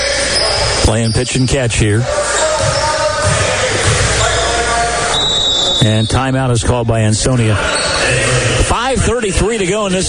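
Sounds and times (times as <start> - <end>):
crowd noise at a high school basketball game: 0.0 - 10.0
speech: 0.9 - 2.3, 5.8 - 8.2, 8.9 - 10.0
basketball dribbled on the court at a high school game: 2.4 - 4.5.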